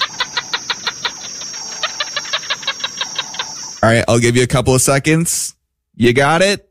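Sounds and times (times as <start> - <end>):
gecko call: 0.0 - 3.9
speech: 3.9 - 6.6.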